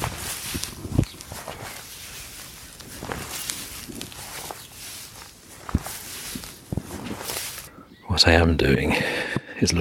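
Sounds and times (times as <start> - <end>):
barefoot footsteps climbing a hill outdoors: 0.0 - 7.7
speech: 8.2 - 9.7.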